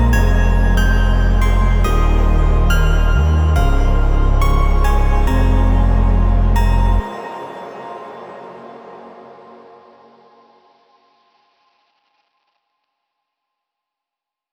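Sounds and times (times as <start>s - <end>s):
future garage loop: 0.0s - 7.1s.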